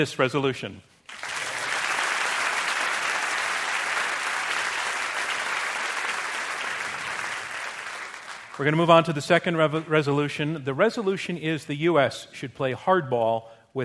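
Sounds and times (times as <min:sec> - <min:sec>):
speech: 0:00.0 - 0:00.9, 0:08.6 - 0:13.8
crowd applause: 0:01.1 - 0:08.8.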